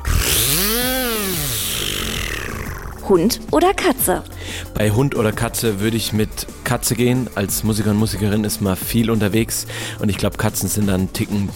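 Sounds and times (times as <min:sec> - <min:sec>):
mouth imitation of buzzing spinning firework: 0:00.0 - 0:03.6
speech: 0:03.1 - 0:11.5.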